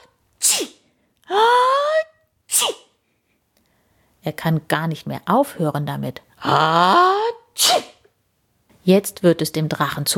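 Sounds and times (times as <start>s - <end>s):
sneezing: 0.4s - 0.9s, 2.0s - 3.0s, 7.3s - 8.1s
speech: 4.2s - 7.9s, 8.8s - 10.1s.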